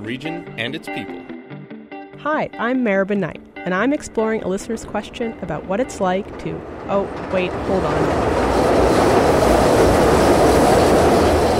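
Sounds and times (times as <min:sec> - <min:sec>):
speech: 0:00.0 - 0:01.3, 0:02.2 - 0:08.8
CTA elevated train passing on tracks: 0:03.7 - 0:11.5.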